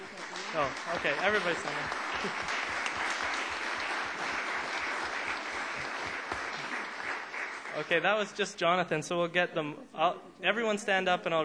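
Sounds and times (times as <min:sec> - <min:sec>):
round of applause: 0:00.0 - 0:08.4
speech: 0:00.5 - 0:02.7, 0:07.8 - 0:11.4.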